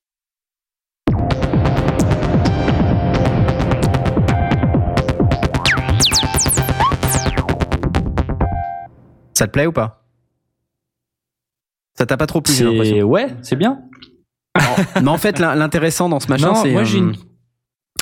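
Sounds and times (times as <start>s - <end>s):
Tetra polyphonic analog synthesizer playing sustained chords: 1.1s - 9.0s
speech: 9.4s - 10.0s, 12.0s - 13.9s, 14.6s - 17.3s
laughter: 14.6s - 15.6s.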